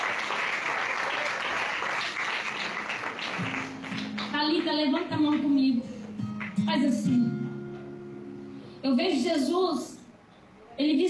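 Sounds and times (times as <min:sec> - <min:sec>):
audience clapping hands: 0:00.0 - 0:06.6
speech: 0:04.7 - 0:05.9, 0:06.7 - 0:07.4, 0:08.8 - 0:09.9, 0:10.8 - 0:11.0.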